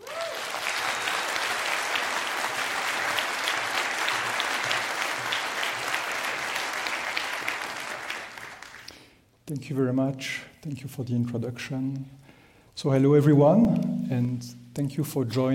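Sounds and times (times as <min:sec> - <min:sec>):
audience applause: 0:00.0 - 0:08.9
speech: 0:09.5 - 0:12.2, 0:12.8 - 0:15.5.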